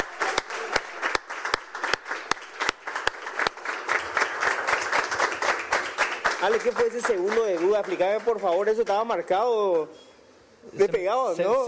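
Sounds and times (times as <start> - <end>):
audience applause: 0.0 - 8.8
speech: 6.4 - 11.6.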